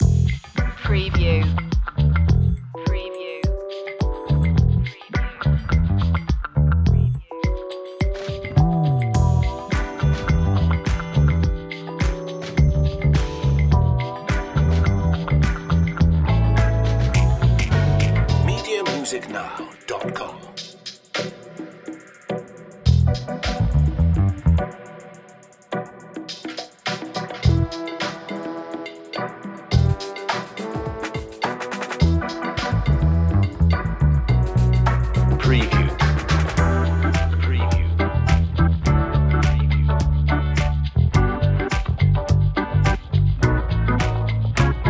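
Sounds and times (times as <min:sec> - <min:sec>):
playful funny bluesy track with bouncy bass: 0:00.0 - 0:21.4, 0:22.9 - 0:24.8, 0:27.2 - 0:28.4, 0:29.1 - 0:31.3, 0:32.0 - 0:44.8.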